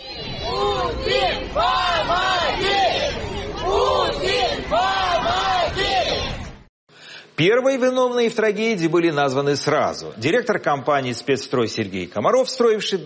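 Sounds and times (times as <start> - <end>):
angry crowd chanting in unison: 0.0 - 6.6
speech: 7.4 - 13.0.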